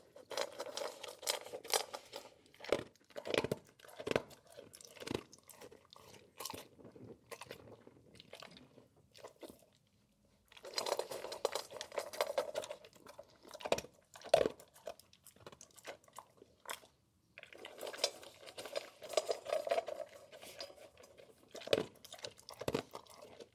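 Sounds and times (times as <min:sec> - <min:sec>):
dog crunching and chewing dry food: 0:00.0 - 0:23.5.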